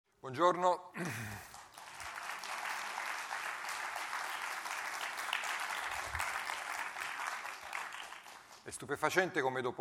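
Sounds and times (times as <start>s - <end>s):
speech: 0.2s - 1.5s, 8.7s - 9.7s
audience applause: 1.4s - 8.6s.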